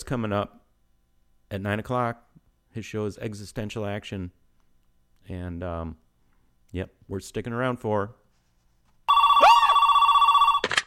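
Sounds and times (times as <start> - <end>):
speech: 0.1 - 0.6, 1.5 - 4.4, 5.2 - 6.0, 6.7 - 8.2
telephone ringing: 9.1 - 10.8.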